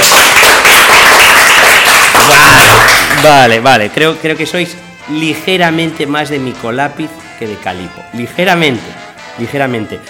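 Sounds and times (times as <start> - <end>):
audience applause: 0.0 - 3.4
speech: 3.2 - 10.0.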